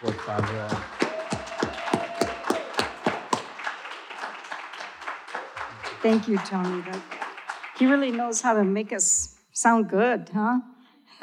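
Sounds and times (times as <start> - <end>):
speech: 0.0 - 1.0, 6.0 - 7.2, 7.8 - 10.7
audience applauding: 0.0 - 8.8.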